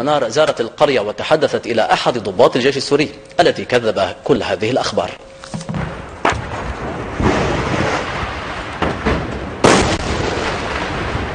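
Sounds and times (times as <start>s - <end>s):
speech: 0.0s - 5.3s
artillery shells exploding: 5.7s - 11.3s.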